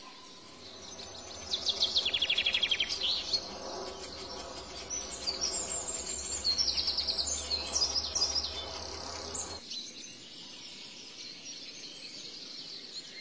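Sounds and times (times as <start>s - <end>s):
shrike singing: 0.1s - 9.6s.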